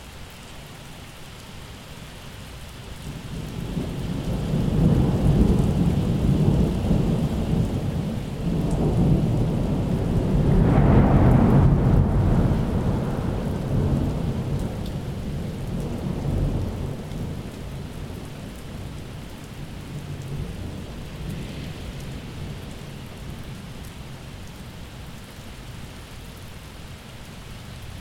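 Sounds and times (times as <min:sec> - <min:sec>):
thunder in a summer storm: 0:03.5 - 0:18.2, 0:20.3 - 0:22.7.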